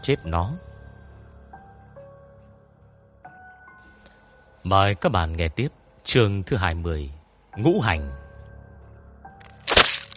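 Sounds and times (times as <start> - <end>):
speech: 0.0 - 0.7, 4.6 - 8.2
cloth being forcefully ripped: 9.5 - 10.1.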